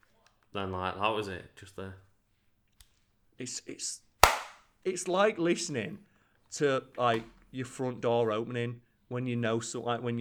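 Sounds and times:
speech: 0.5s - 2.1s, 3.4s - 4.1s, 4.8s - 10.1s
case snapping shut: 4.2s - 4.6s.

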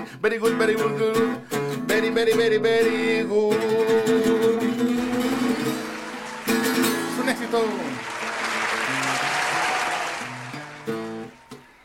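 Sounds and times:
speech: 0.1s - 4.5s, 7.3s - 8.2s
standing ovation applause: 4.6s - 11.8s.

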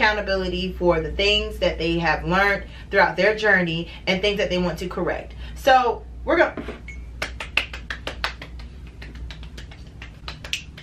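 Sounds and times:
speech: 0.1s - 6.9s
round of applause, hand clapping: 7.2s - 10.8s.

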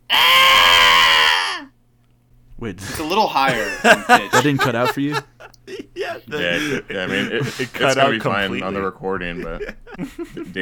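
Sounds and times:
voice imitating the Wilhelm scream: 0.0s - 1.7s
speech: 2.6s - 10.5s
laughter: 3.4s - 10.5s.

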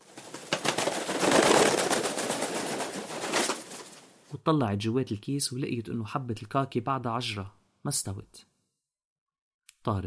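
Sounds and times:
seagull flapping its wings, flying off: 0.0s - 4.2s
speech: 4.4s - 8.5s, 9.8s - 10.0s.

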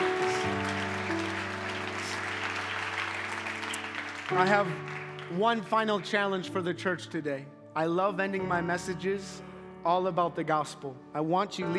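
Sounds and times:
church audience clapping: 0.0s - 6.5s
speech: 4.3s - 11.7s.

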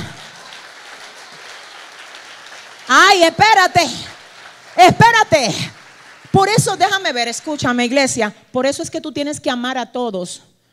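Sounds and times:
audience applause: 0.0s - 7.9s
speech: 2.9s - 4.1s, 4.8s - 10.5s.

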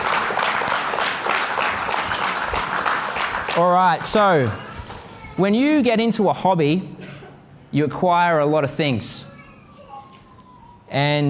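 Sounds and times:
church congregation applauding during a service: 0.0s - 5.1s
speech: 3.6s - 4.7s, 5.4s - 7.0s, 7.7s - 9.3s, 10.9s - 11.2s.

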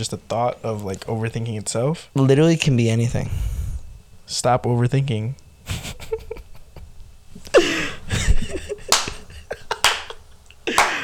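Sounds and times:
speech: 0.0s - 3.6s, 4.3s - 5.8s
laughter: 5.6s - 11.0s
slow clap: 8.9s - 11.0s.

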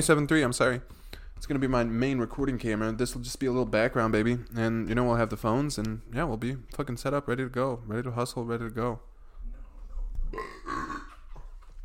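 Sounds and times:
speech: 0.0s - 9.1s, 10.3s - 10.9s
loud croaky burp: 10.3s - 11.5s.

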